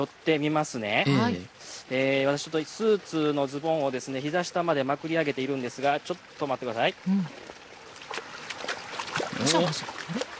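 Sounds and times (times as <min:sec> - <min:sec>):
speech: 0:00.0 - 0:07.6, 0:09.4 - 0:10.3
person murmuring: 0:01.0 - 0:01.5, 0:07.1 - 0:07.3
feet sloshing through shallow ankle-deep water: 0:07.2 - 0:10.3.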